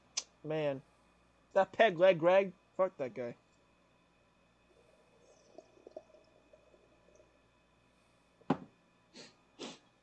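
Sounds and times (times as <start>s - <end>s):
speech: 0.4s - 0.9s, 1.5s - 3.4s
person sipping a cola drink: 4.8s - 7.3s.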